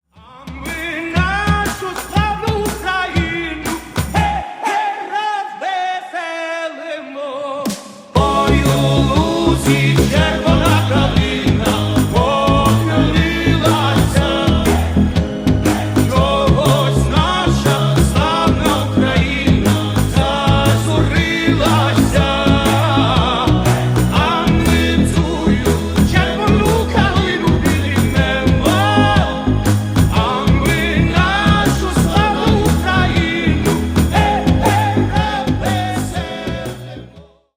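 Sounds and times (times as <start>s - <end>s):
Ukrainian folk song: 0.1s - 37.5s.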